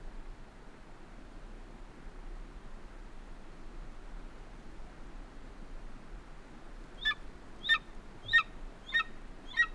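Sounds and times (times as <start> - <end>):
golden eagle giving thin downslurred yelps: 7.0 - 9.7.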